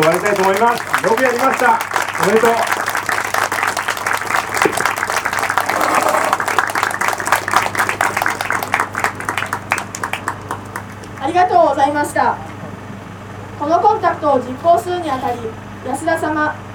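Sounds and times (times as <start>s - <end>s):
audience applause: 0.0s - 11.4s
speech: 0.3s - 2.8s, 11.8s - 12.5s, 13.6s - 16.7s.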